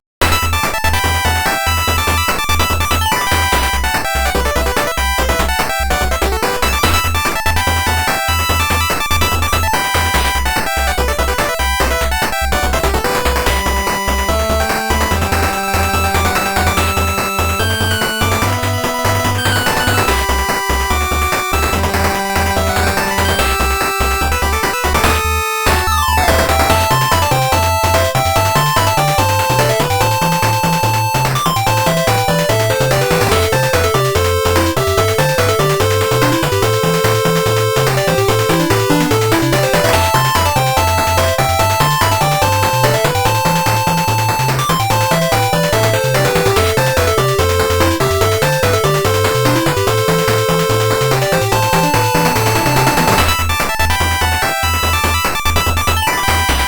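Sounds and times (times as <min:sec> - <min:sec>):
8-bit music: 0:00.2 - 0:56.6.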